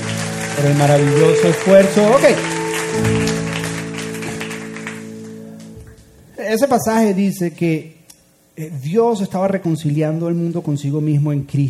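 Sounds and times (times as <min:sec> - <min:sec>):
audience applause: 0:00.0 - 0:06.0
sustained low keyboard chords: 0:00.0 - 0:06.4
speech: 0:00.6 - 0:03.5, 0:06.5 - 0:08.0, 0:08.6 - 0:11.6.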